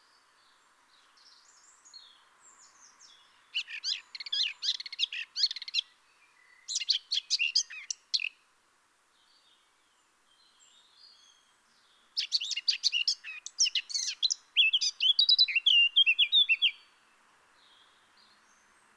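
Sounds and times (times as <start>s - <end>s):
Eurasian blackcap singing: 1.1s - 8.4s, 10.3s - 17.0s.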